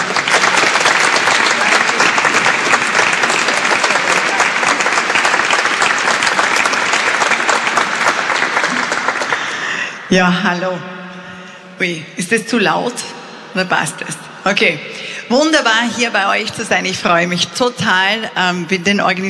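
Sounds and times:
audience applause: 0.0 - 9.9
speech: 10.1 - 11.0, 11.8 - 19.2.

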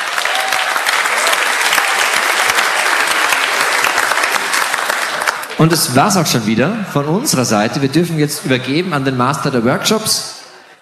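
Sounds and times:
audience applause: 0.0 - 6.4
speech: 5.6 - 10.4.

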